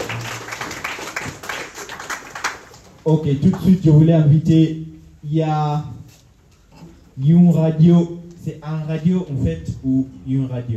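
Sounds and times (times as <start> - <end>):
audience applause: 0.0 - 3.0
speech: 3.0 - 6.0, 7.2 - 10.7.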